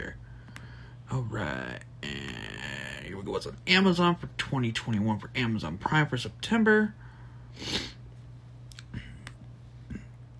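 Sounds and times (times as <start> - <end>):
steady low hum: 0.0 - 10.3
speech: 1.1 - 1.9, 3.1 - 7.0, 7.6 - 7.9
sharp hissy nasal sniff from allergies: 7.5 - 8.0.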